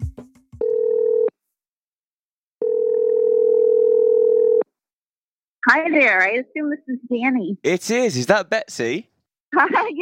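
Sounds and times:
telephone call ringing tone: 0.6s - 1.4s, 2.6s - 4.7s
speech: 5.7s - 10.0s.

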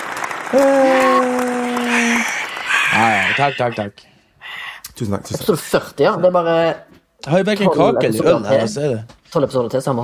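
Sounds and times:
crowd applause: 0.0s - 3.8s
long sustained whooping cheer: 0.4s - 3.8s
speech: 0.5s - 1.0s, 3.4s - 10.0s.

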